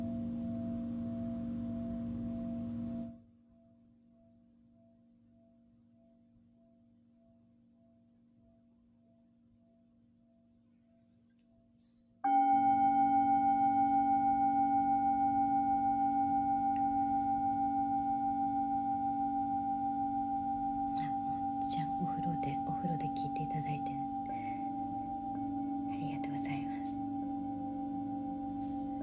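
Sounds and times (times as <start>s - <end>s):
singing bowl ringing: 0.0s - 29.0s
soft voices: 21.0s - 24.8s, 25.9s - 27.1s.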